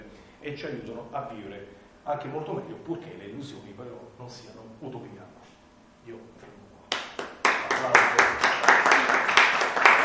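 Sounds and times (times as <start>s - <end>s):
speech: 0.4s - 6.6s
audience applause: 6.9s - 10.0s.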